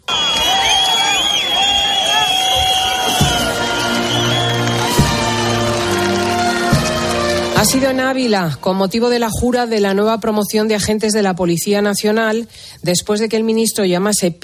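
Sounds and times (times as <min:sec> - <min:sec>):
crowd shouting in protest: 0:00.0 - 0:07.8
crowd whistling in protest: 0:00.0 - 0:08.8
speech: 0:07.7 - 0:14.4.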